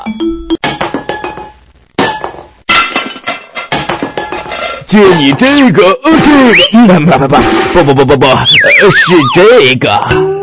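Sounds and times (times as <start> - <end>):
metal cooking pots clanking against each other: 2.1 - 4.8
speech: 4.9 - 10.4.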